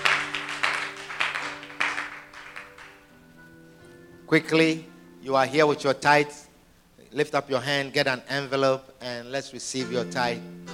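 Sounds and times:
audience clapping: 0.0s - 3.2s
speech: 4.3s - 6.4s, 7.1s - 10.7s.

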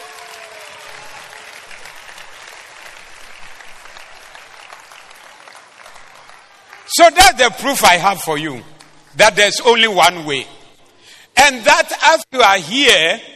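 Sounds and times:
audience clapping: 0.0s - 10.4s
speech: 6.9s - 10.6s, 11.4s - 13.3s.

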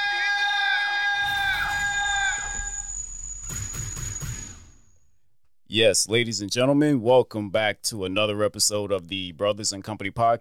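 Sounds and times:
studio audience cheering and screaming: 0.0s - 2.9s
speech: 5.7s - 10.3s.

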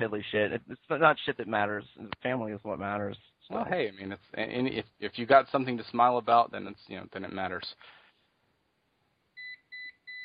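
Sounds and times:
speech: 0.0s - 8.0s
phone alert beeps: 9.4s - 10.2s.

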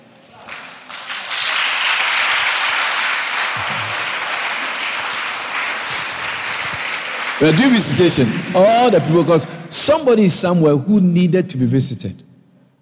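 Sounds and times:
people clapping: 0.2s - 9.5s
speech: 7.4s - 12.3s.

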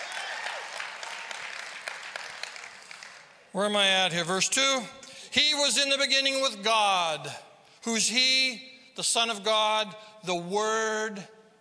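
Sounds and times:
audience clapping: 0.0s - 3.5s
speech: 3.6s - 11.4s.

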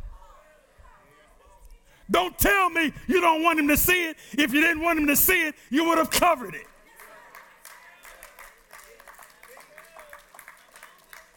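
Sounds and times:
speech: 2.1s - 6.7s
women clapping: 5.8s - 11.3s.

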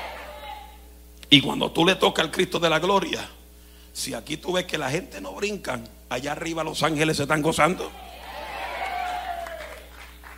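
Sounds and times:
speech: 1.3s - 3.4s, 4.0s - 8.0s
church congregation clapping: 8.7s - 10.3s.

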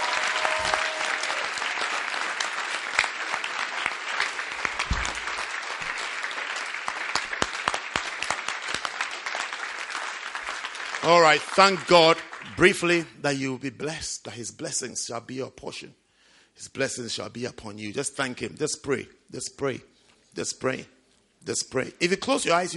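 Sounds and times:
audience applause: 0.0s - 12.8s
speech: 11.1s - 16.0s, 16.6s - 22.7s.

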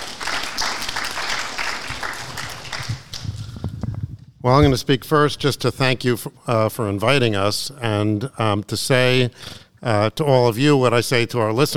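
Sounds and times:
audience applause: 0.0s - 3.6s
speech: 4.4s - 11.7s.

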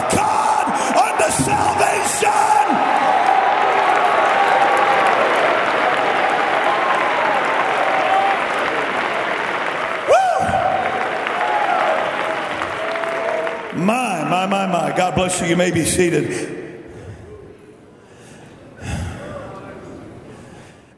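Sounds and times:
large audience roaring and applauding: 0.0s - 15.2s
speech: 15.2s - 16.6s.

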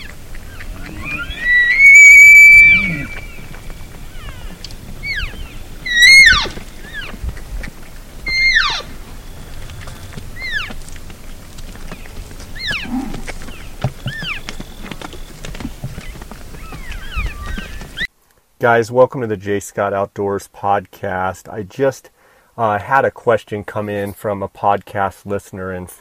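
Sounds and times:
elk whistled calls: 0.0s - 7.2s, 8.2s - 10.9s, 11.9s - 15.4s
elk squeal: 0.0s - 18.1s
short descending chirps: 1.0s - 3.7s
speech: 18.6s - 25.9s.

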